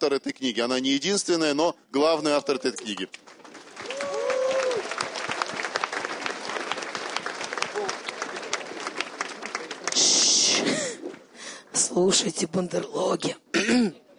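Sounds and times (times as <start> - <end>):
speech: 0.0 - 3.4, 12.0 - 14.0
audience applause: 2.6 - 11.0.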